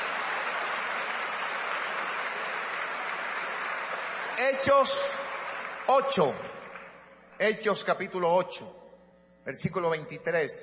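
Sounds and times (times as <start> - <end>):
audience applause: 0.0 - 7.0
speech: 4.4 - 5.2, 5.9 - 6.6, 7.4 - 8.8, 9.4 - 10.6.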